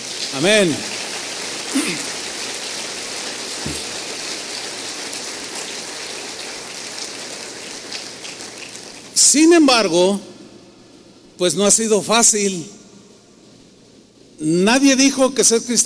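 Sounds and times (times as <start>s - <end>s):
audience applauding: 0.0s - 9.1s
speech: 0.3s - 0.9s, 1.7s - 2.1s, 9.3s - 10.4s, 11.4s - 12.9s, 14.4s - 15.8s.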